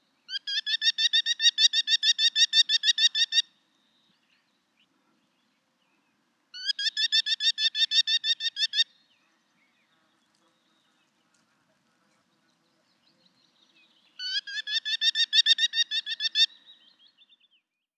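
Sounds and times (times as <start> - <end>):
Merlin ki-ki-ki calls: 0.3 - 3.6, 6.5 - 9.0, 14.2 - 16.8.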